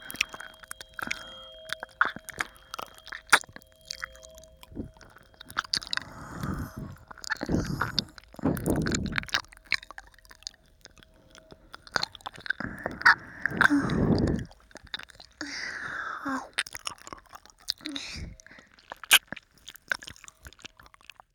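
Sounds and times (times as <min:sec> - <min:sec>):
tuning fork ringing: 0:00.0 - 0:14.9
ear licking: 0:00.0 - 0:21.2.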